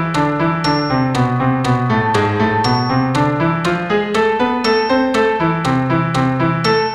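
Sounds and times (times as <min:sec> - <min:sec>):
A minor harmonic: 0:00.2 - 0:06.8.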